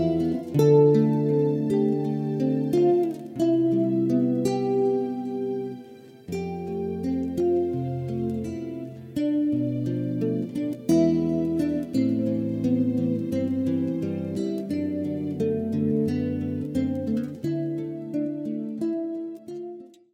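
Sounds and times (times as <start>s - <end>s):
light guitar: 0.0s - 20.1s.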